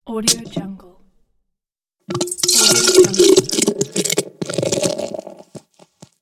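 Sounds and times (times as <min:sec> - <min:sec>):
beer being opened: 0:02.1 - 0:05.8.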